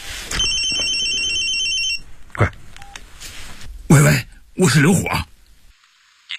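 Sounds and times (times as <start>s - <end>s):
telephone ringing: 0.4s - 2.0s
speech: 4.0s - 5.3s.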